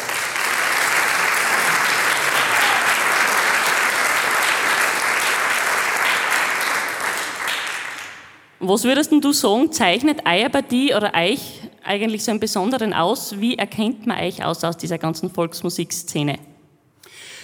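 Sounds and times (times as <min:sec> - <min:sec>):
applause for folk-music performers: 0:00.0 - 0:08.4
speech: 0:08.7 - 0:16.5.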